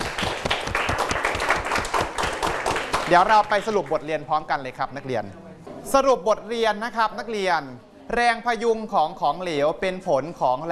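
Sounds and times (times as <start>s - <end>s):
students in a Thai science class clapping: 0.0s - 4.0s
speech: 3.1s - 10.7s.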